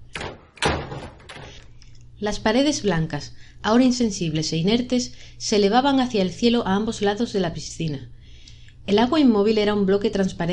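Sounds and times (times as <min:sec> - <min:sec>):
glass double doors closing: 0:00.1 - 0:01.6
speech: 0:02.2 - 0:08.2, 0:08.8 - 0:10.5.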